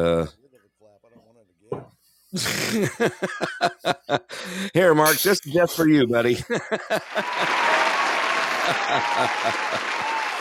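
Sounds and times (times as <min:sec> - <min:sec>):
speech: 0:00.0 - 0:00.4, 0:02.3 - 0:07.9, 0:08.7 - 0:10.1
laughter: 0:02.4 - 0:04.7, 0:06.3 - 0:10.3
variety show audience applause: 0:06.9 - 0:10.3.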